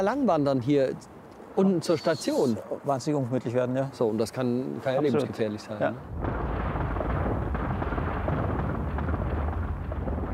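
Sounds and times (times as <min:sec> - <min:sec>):
speech: 0:00.0 - 0:06.3
rockfall: 0:06.1 - 0:10.3.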